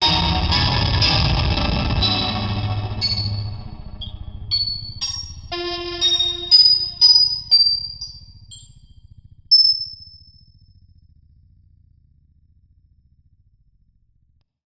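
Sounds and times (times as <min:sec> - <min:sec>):
bad piano: 0:00.0 - 0:07.4.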